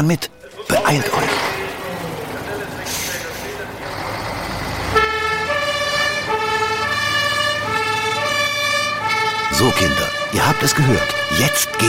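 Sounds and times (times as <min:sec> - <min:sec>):
speech: 0:00.0 - 0:01.6, 0:09.6 - 0:11.8
fire engine departing with siren: 0:02.6 - 0:11.8.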